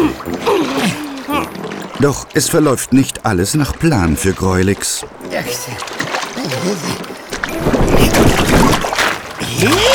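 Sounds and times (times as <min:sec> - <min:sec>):
wavering cry-like vocal sounds: 0:00.0 - 0:01.8, 0:05.3 - 0:08.7
heavy churning splashes of fishing net hauled from a river: 0:00.0 - 0:09.9
speech: 0:02.0 - 0:08.9, 0:09.6 - 0:09.9.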